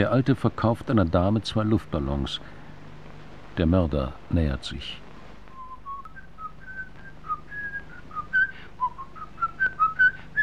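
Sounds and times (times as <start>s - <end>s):
speech: 0.0s - 2.6s, 3.6s - 5.0s
man whistling: 5.5s - 10.4s.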